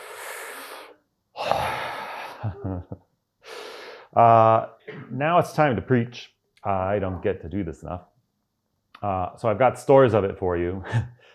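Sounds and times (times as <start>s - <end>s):
deep breaths taken slowly: 0.0s - 2.6s, 3.4s - 4.2s
speech: 2.6s - 3.1s, 4.1s - 8.1s, 9.0s - 11.2s.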